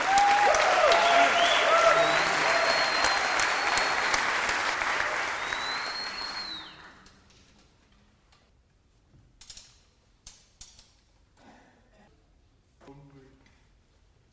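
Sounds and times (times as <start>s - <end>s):
audience applause: 0.0s - 7.1s
whistles: 0.2s - 7.2s.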